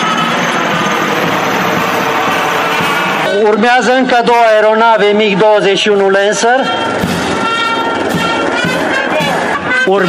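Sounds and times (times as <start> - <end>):
IAR-330 military helicopter flying past: 0.0 - 10.0
speech: 3.4 - 7.2, 9.9 - 10.0.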